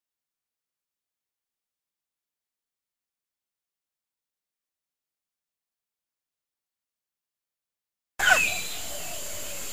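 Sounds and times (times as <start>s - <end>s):
female junglefowl decoy bird squeaking and clucking: 8.2s - 9.7s.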